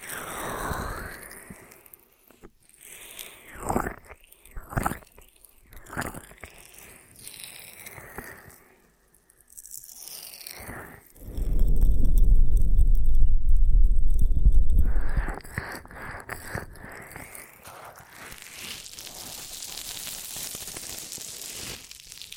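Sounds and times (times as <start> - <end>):
dense low rumbling rub: 11.2 - 15.6.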